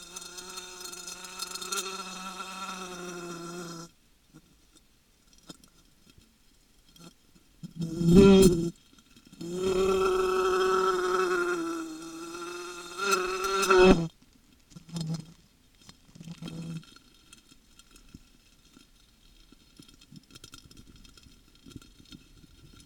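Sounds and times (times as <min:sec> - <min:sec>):
wasp buzzing: 0:00.0 - 0:03.9, 0:07.8 - 0:08.7, 0:09.4 - 0:14.1.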